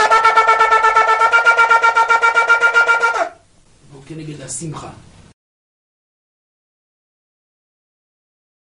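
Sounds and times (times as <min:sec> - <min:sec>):
shofar played by a rabbi: 0:00.0 - 0:03.5.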